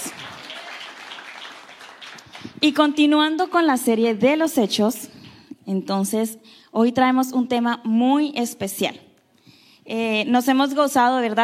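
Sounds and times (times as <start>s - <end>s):
audience applause: 0.0s - 2.6s
speech: 2.6s - 9.1s, 9.9s - 11.4s.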